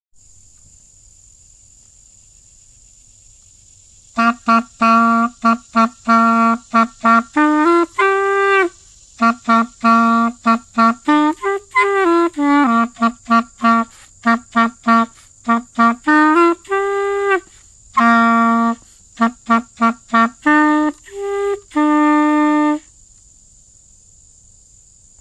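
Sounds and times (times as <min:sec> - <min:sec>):
clarinet: 0:04.2 - 0:22.8.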